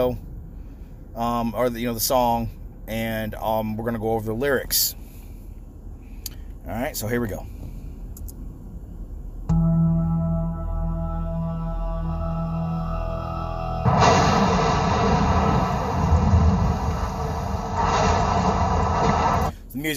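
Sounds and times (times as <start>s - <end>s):
speech: 0.0s - 0.3s, 1.2s - 5.0s, 6.6s - 7.6s
low droning tone: 8.6s - 19.6s
thunder in music video: 13.8s - 19.6s.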